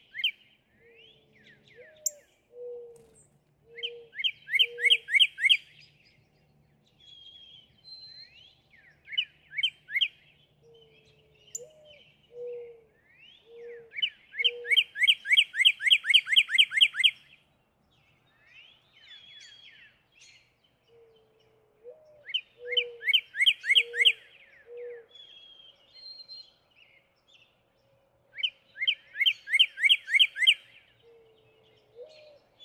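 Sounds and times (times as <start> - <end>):
Northern Cardinal: 0.0 - 32.6.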